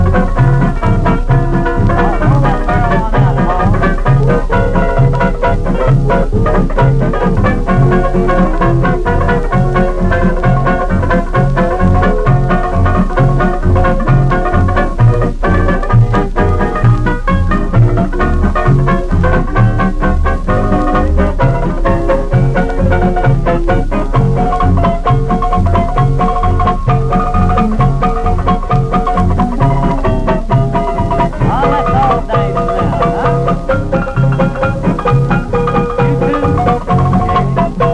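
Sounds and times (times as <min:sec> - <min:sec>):
tenor banjo playing a polka: 0:00.0 - 0:37.9.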